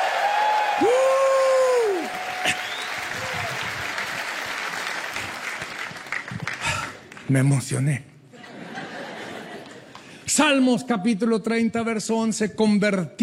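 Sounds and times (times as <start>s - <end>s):
crowd shouting and whooping: 0.0s - 4.3s
crowd applauding: 0.0s - 7.3s
speech: 0.8s - 1.2s, 7.3s - 8.1s, 10.4s - 13.2s
laughter: 8.4s - 10.1s.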